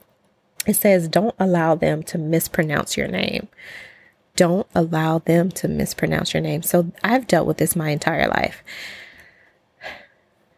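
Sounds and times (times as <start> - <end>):
speech: 0.6 - 9.0
deep breath: 3.6 - 4.2, 8.7 - 10.2.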